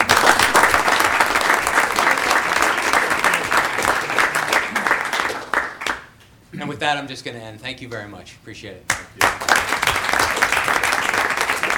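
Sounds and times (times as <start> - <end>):
audience clapping: 0.0 - 6.2, 8.9 - 11.7
speech: 6.8 - 9.4.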